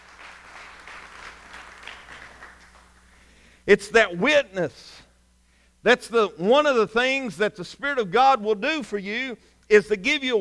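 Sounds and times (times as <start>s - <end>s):
crowd applause: 0.0s - 3.1s
speech: 3.7s - 5.0s, 5.8s - 10.3s.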